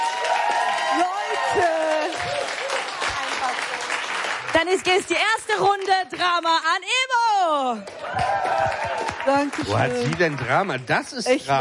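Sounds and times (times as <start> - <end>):
audience applause: 0.0 - 6.5, 7.8 - 11.5
speech: 4.6 - 11.5.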